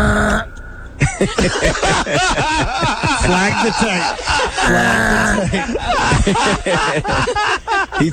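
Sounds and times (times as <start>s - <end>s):
man imitating a goat: 0.0s - 0.6s, 4.6s - 5.5s
snickering laughter: 0.0s - 8.1s
speech: 1.2s - 8.1s.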